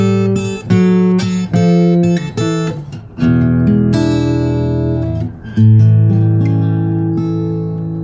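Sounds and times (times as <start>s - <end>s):
fingerpicked blues guitar rundown: 0.0s - 8.0s.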